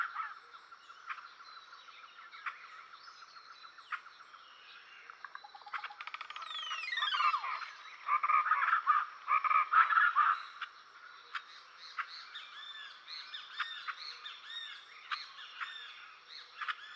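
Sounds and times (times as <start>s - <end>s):
rainforest songbirds singing: 0.0s - 16.9s.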